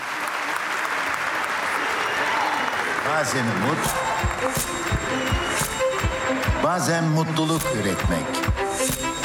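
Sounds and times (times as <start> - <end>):
strong audience applause: 0.0 - 7.2
speech: 3.1 - 5.7, 6.3 - 9.1.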